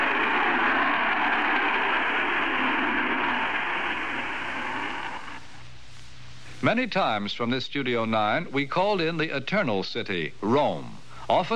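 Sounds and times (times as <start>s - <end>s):
rocket launch roar: 0.0s - 5.6s
speech: 6.6s - 11.5s.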